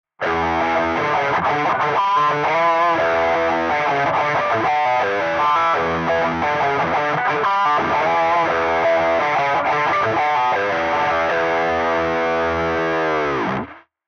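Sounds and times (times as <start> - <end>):
electric guitar riff through Neural DSP Soldano SLO 100 amp simulator: 0.2 - 13.8.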